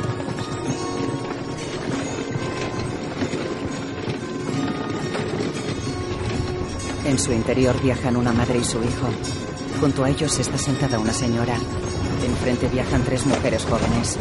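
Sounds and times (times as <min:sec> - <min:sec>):
horse hooves of a stagecoach on a forest road in a Western: 0:00.0 - 0:14.1
speech: 0:07.1 - 0:14.1.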